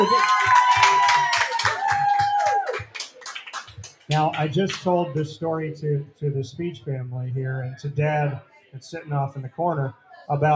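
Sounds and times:
audience clapping and cheering: 0:00.0 - 0:05.0
speech: 0:04.1 - 0:10.5.

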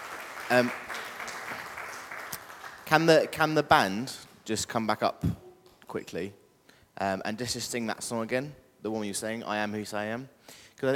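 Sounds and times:
round of applause: 0:00.0 - 0:03.4
speech: 0:00.5 - 0:00.9, 0:02.9 - 0:06.4, 0:07.0 - 0:10.9.

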